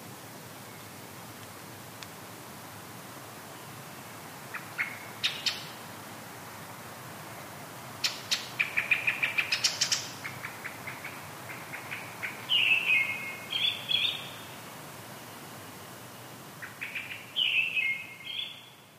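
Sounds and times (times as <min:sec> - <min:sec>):
steady hiss: 0:00.0 - 0:18.9
Brown-headed thrush singing: 0:04.5 - 0:05.8, 0:08.0 - 0:14.6, 0:16.6 - 0:18.9.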